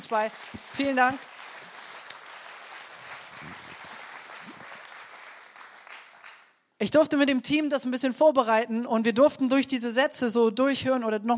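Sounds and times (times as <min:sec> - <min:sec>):
speech: 0:00.0 - 0:01.3, 0:06.8 - 0:11.3
audience applause: 0:00.0 - 0:06.6.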